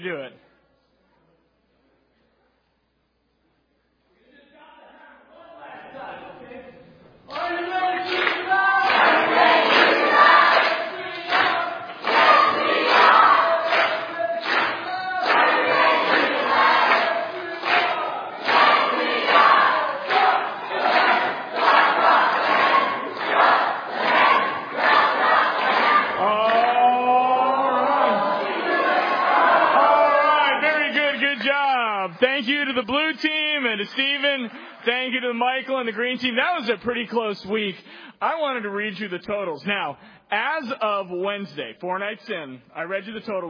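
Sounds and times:
speech: 0.0 - 0.5, 35.8 - 43.4
team crowd cheering: 7.3 - 35.1.

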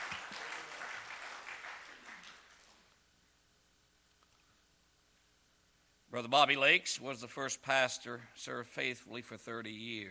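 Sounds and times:
audience round of applause: 0.0 - 2.9
speech: 6.2 - 10.0.

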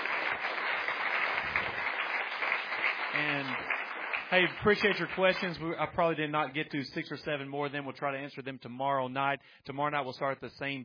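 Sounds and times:
audience applause: 0.0 - 5.7
speech: 3.2 - 3.6, 4.3 - 10.8.

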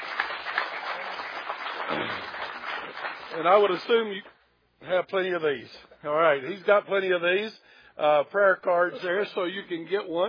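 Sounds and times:
crowd applauding: 0.0 - 3.9
speech: 1.9 - 2.3, 3.3 - 10.2.

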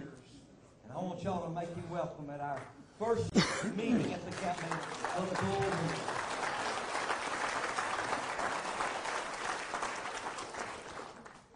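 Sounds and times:
speech: 1.1 - 6.2
audience applause: 4.1 - 11.5.

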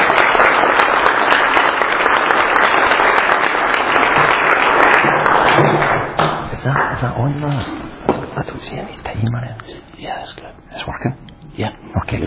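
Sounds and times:
audience clapping to welcome a speaker to the stage: 0.0 - 8.5
speech: 7.0 - 12.2.

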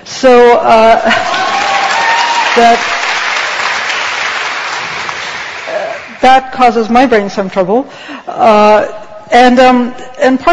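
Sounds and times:
speech: 0.2 - 1.4, 2.6 - 3.0, 6.2 - 10.5
crowd at a speech cheering and applauding: 1.1 - 6.2.

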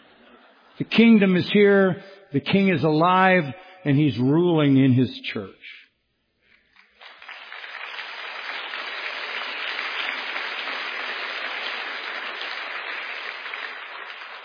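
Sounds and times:
speech: 0.8 - 5.8
audience applause: 6.8 - 14.4.

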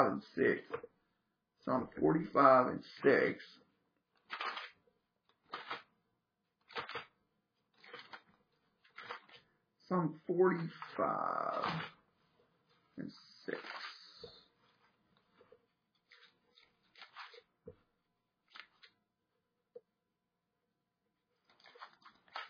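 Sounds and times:
speech: 0.0 - 0.9, 1.6 - 3.6, 9.9 - 12.0, 13.0 - 13.8
thin Bible pages being turned: 4.2 - 5.9, 6.6 - 9.5, 10.5 - 12.0, 13.5 - 14.2, 14.8 - 17.6, 18.5 - 19.0, 21.4 - 22.4.

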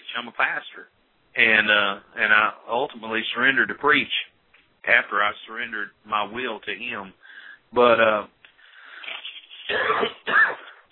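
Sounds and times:
speech: 0.2 - 8.4, 9.7 - 10.7
throat clearing: 9.6 - 10.8
person coughing: 9.6 - 10.9.

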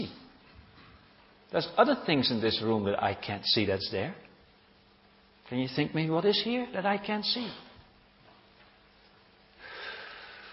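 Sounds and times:
speech: 1.5 - 4.3, 5.5 - 7.6
person breathing in deeply: 9.6 - 10.5.

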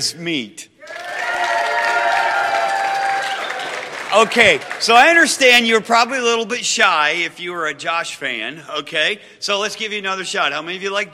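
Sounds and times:
speech: 0.0 - 0.7, 4.2 - 11.1
audience clapping: 0.8 - 5.6.

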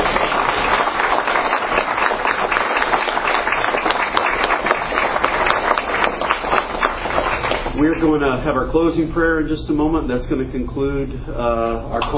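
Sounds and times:
audience applause: 0.0 - 7.8
speech: 8.1 - 12.1.

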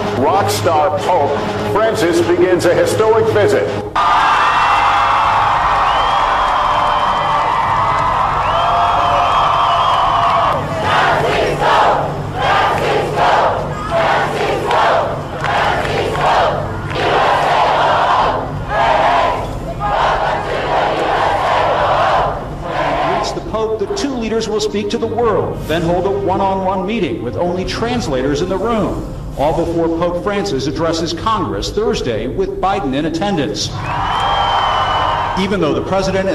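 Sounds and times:
speech: 0.2 - 4.4, 24.7 - 34.0, 35.4 - 36.3
large crowd cheering in welcome for Pope Francis in America: 3.9 - 23.4, 33.8 - 36.2.

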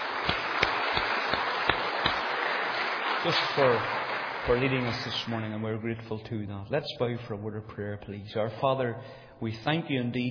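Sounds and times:
audience applause: 0.0 - 5.6
speech: 3.2 - 10.2.

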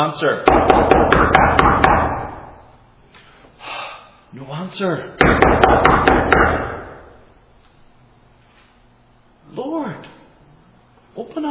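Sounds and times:
speech: 0.0 - 1.5, 4.4 - 6.4
knocking on a door: 0.5 - 2.3, 5.2 - 6.8.

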